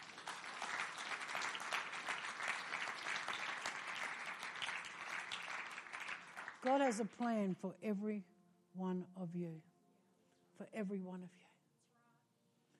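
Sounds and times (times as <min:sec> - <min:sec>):
audience applause: 0:00.0 - 0:07.0
speech: 0:06.6 - 0:09.7, 0:10.6 - 0:11.5.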